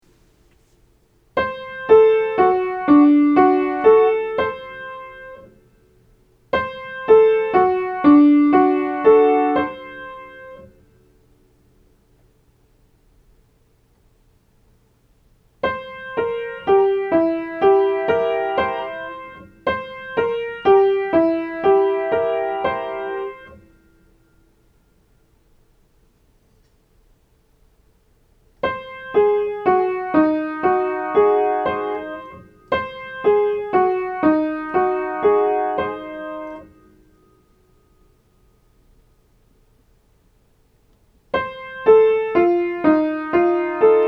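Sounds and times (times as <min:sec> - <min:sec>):
major and minor seventh chords for aural training: 0:01.4 - 0:05.4, 0:06.6 - 0:10.6, 0:15.7 - 0:23.8, 0:28.6 - 0:36.8, 0:41.4 - 0:44.0.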